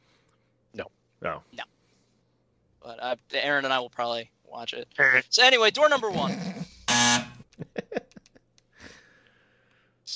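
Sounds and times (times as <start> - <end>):
breathing: 0.0 - 0.6, 1.5 - 2.3, 8.7 - 10.1
speech: 0.7 - 1.6, 3.2 - 6.6
wrong-answer buzzer: 6.9 - 7.4.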